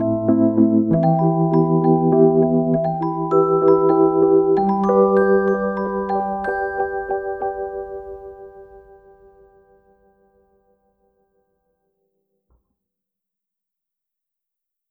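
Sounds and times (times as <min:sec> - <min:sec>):
electric piano duet: 0:00.0 - 0:10.1.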